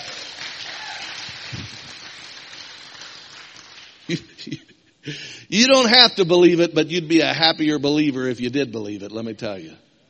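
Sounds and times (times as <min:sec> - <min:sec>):
audience clapping: 0:00.0 - 0:04.4
speech: 0:04.1 - 0:09.8.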